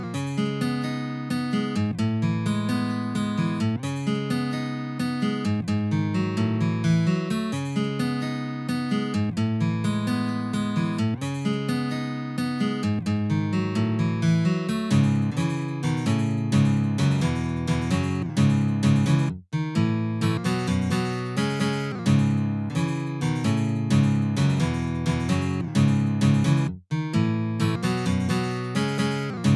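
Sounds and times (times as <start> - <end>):
guitar melody from a film: 0.0 - 29.5.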